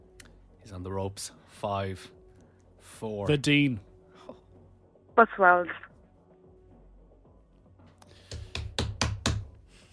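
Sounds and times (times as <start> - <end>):
speech: 0.7 - 2.2, 2.8 - 3.9, 5.2 - 5.8
hand slapping a desk: 8.2 - 9.6.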